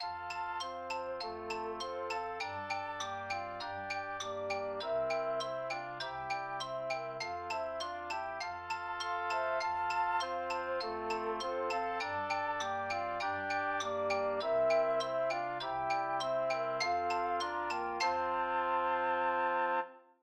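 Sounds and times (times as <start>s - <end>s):
mallet percussion: 0.0s - 19.0s
flutes: 0.0s - 20.2s.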